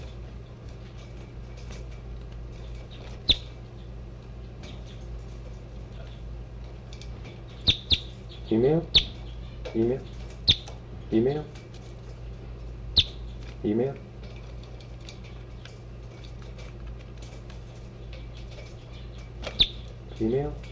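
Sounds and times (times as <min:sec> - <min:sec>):
birds chirping: 0:00.0 - 0:20.6
speech: 0:08.5 - 0:09.0, 0:09.7 - 0:10.2, 0:11.1 - 0:11.6, 0:13.6 - 0:14.1, 0:20.2 - 0:20.6.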